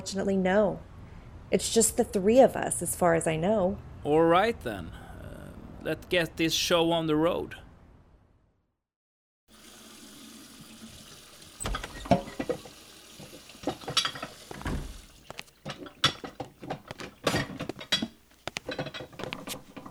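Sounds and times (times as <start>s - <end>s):
speech: 0.0s - 0.9s, 1.5s - 5.0s, 5.8s - 7.6s
running water at a sink: 9.5s - 17.3s
clinking and scrubbing as someone washes things at a sink: 11.6s - 19.8s.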